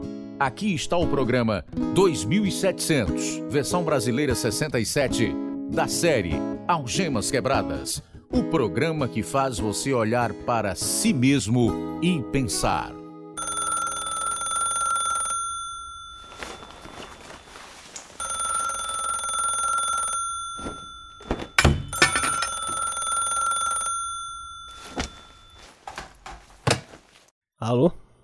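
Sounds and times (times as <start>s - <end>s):
speech: 0.4s - 13.5s
telephone ringing: 13.4s - 26.1s
dull thumps and knocks: 20.6s - 22.4s, 24.9s - 27.3s.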